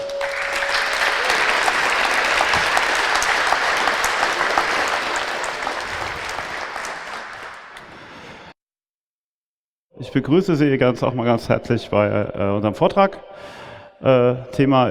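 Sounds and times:
audience applause at talk: 0:00.0 - 0:08.5
speech: 0:10.1 - 0:14.8.

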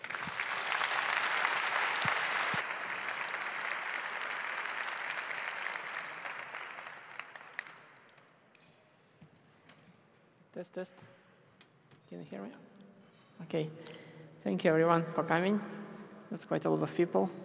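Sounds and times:
audience applause: 0:00.0 - 0:08.2
speech: 0:10.6 - 0:11.2, 0:12.1 - 0:12.7, 0:13.4 - 0:17.4.

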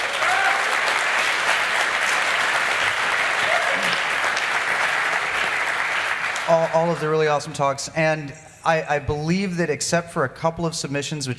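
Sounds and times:
audience applause after conference lightning talks: 0:00.0 - 0:07.4
speech: 0:06.5 - 0:11.3.

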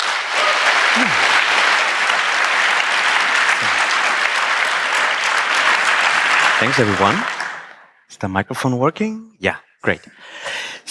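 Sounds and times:
audience applause: 0:00.0 - 0:07.8
speech: 0:06.6 - 0:07.4, 0:08.2 - 0:10.8.

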